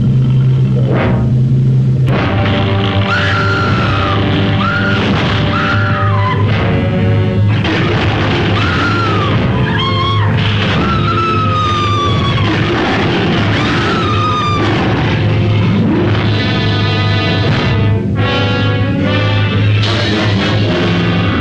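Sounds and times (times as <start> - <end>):
loud dense rumbling film soundtrack with heavy low booms: 0.0 - 21.3
woman's shrill film screams: 3.0 - 6.5, 7.8 - 15.0.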